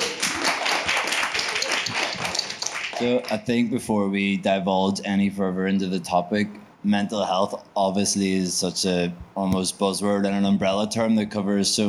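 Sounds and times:
audience applauding panelists at a panel discussion on mental health and addiction: 0.0 - 3.4
speech: 3.0 - 11.8.

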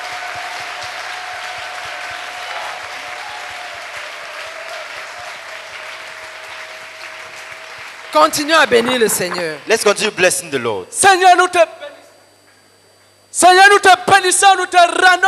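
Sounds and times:
congregation clapping for the Lord: 0.0 - 9.8
speech: 8.2 - 11.8, 14.2 - 15.2
sustained tone: 8.4 - 9.7
regular low pulse: 8.5 - 9.7.

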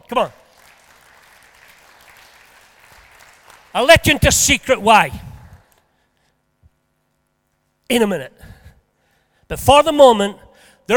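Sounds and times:
speech: 0.1 - 0.4, 3.7 - 5.3, 7.9 - 8.5, 9.5 - 10.9
audience applause: 0.5 - 3.8.

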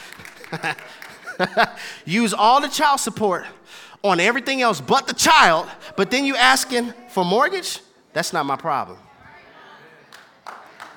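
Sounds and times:
one person clapping: 0.0 - 1.4, 10.1 - 10.9
laughter: 0.0 - 2.0
speech: 0.5 - 9.0.

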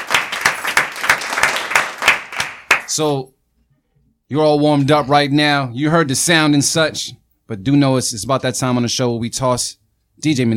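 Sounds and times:
clapping applause: 0.0 - 3.1
speech: 3.0 - 3.4, 4.3 - 10.5.

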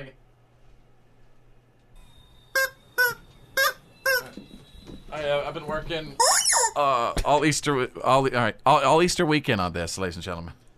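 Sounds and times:
speech: 0.0 - 0.2, 5.2 - 10.6
rubber chicken toy squeaking: 2.6 - 4.4, 6.2 - 6.8.

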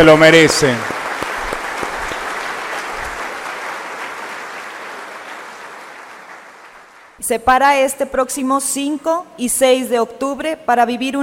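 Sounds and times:
speech: 0.0 - 0.9, 7.3 - 11.2
applause: 0.0 - 7.2.

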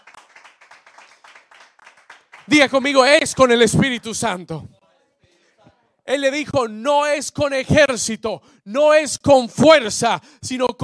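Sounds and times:
audience applauding: 0.0 - 4.3
speech: 2.5 - 4.8, 6.1 - 10.8.

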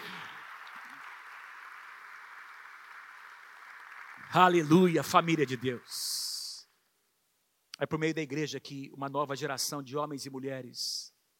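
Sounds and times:
audience applause: 0.0 - 6.5
speech: 4.2 - 6.3, 7.8 - 11.2.

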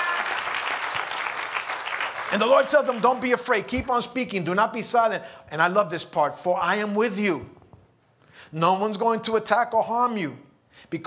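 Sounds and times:
audience clapping hands: 0.0 - 3.8
speech: 2.3 - 7.6, 8.5 - 11.0.

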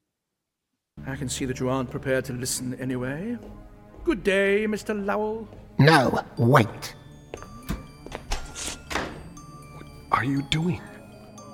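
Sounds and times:
speech: 1.1 - 7.0, 10.2 - 10.9
door being locked: 7.6 - 9.4.

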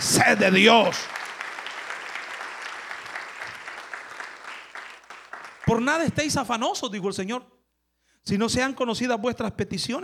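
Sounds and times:
audience applause: 0.0 - 6.4
speech: 0.1 - 1.2, 5.7 - 7.6, 8.2 - 10.0.

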